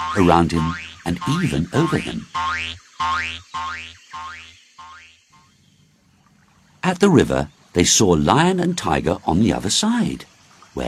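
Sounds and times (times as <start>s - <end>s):
springy cartoon boings: 0.0s - 5.5s
speech: 0.1s - 4.5s, 6.8s - 10.8s.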